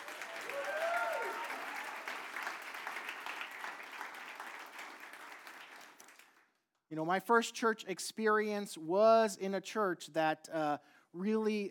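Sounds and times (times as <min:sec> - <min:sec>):
audience applause: 0:00.0 - 0:06.4
speech: 0:06.9 - 0:11.6.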